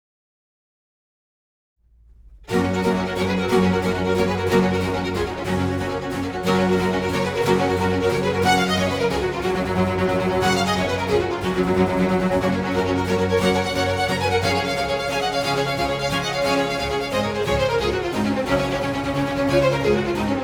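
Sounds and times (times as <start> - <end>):
concerto in G major: 2.4 - 20.4.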